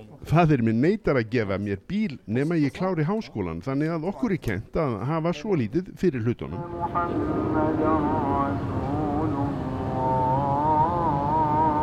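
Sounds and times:
speech: 0:00.3 - 0:09.0
muezzin's call to prayer from mosque: 0:06.4 - 0:11.8
low rumble: 0:06.6 - 0:11.8.

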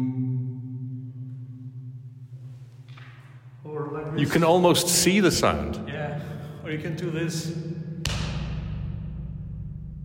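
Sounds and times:
speech: 0:04.2 - 0:07.8
hard chest slap echoing in lighthouse: 0:08.0 - 0:09.1.

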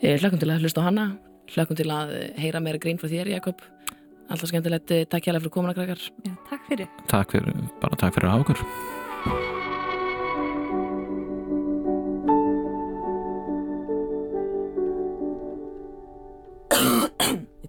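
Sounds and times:
speech: 0:00.0 - 0:09.5
sustained musical tones: 0:06.3 - 0:16.7
harsh cough: 0:16.7 - 0:17.6.

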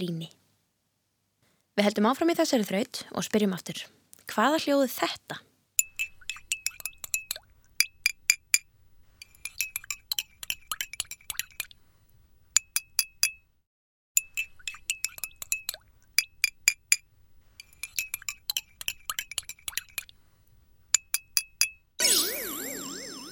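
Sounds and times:
speech: 0:00.0 - 0:00.4, 0:01.8 - 0:05.5
teaspoon stirring in a cup: 0:05.8 - 0:11.8, 0:12.5 - 0:13.5, 0:14.2 - 0:20.2, 0:20.9 - 0:21.8.

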